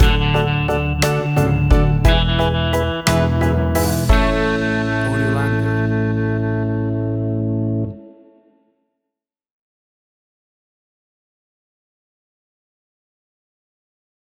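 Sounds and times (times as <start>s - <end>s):
1950s style music sting: 0.0s - 7.2s.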